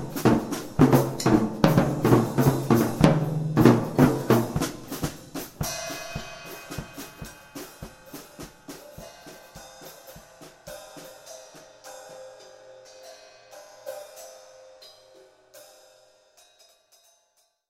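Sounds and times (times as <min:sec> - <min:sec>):
drum solo: 0:00.0 - 0:12.4.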